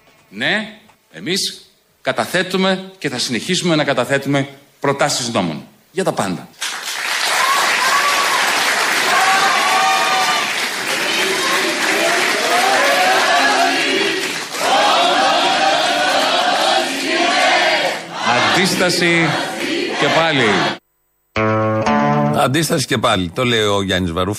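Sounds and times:
speech: 0.3s - 6.6s, 18.6s - 20.8s, 22.4s - 24.3s
applause and cheering: 6.6s - 18.0s
crowd chanting a slogan: 8.8s - 20.8s.

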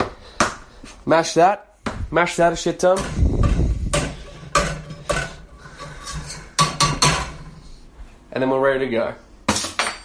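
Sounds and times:
speech: 1.0s - 3.2s, 8.4s - 9.2s
banging on a cooking pot: 3.0s - 5.5s, 6.6s - 7.5s.

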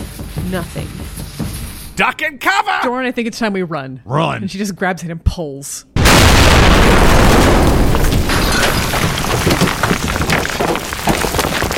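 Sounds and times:
speech: 0.4s - 5.9s
explosion blast from a lit fuse: 6.0s - 11.3s.

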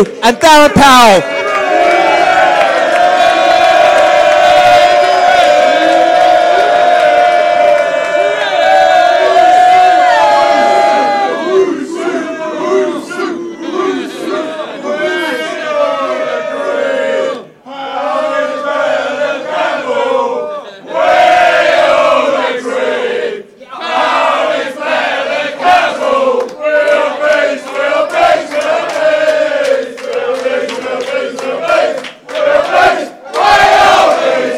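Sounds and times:
speech: 0.0s - 1.4s
crowd applauding: 0.0s - 11.6s, 26.4s - 34.5s
large crowd cheering and roaring: 0.0s - 23.1s, 23.8s - 34.5s.

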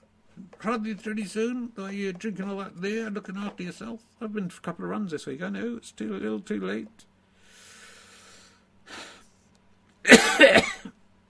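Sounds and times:
speech: 0.6s - 7.1s
person coughing: 10.1s - 11.0s.

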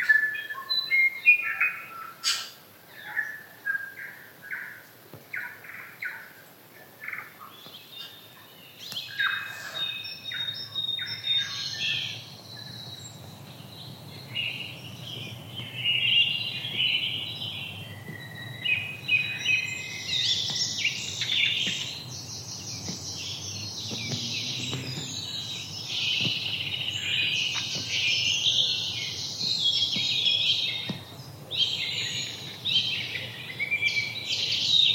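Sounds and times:
forest birds chirping and singing: 0.0s - 34.9s
soft low rumble: 22.9s - 26.6s.

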